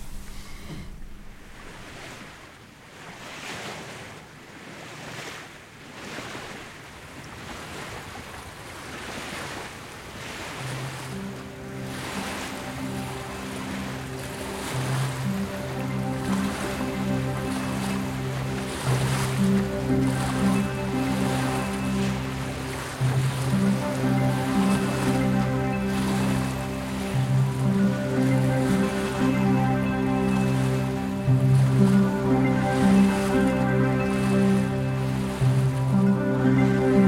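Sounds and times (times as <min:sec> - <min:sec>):
Atlantic sea waves heard from a lighthouse: 0:00.0 - 0:37.0
wind heard from a lighthouse: 0:00.0 - 0:37.0
sustained tonal music-like drones: 0:10.6 - 0:37.0.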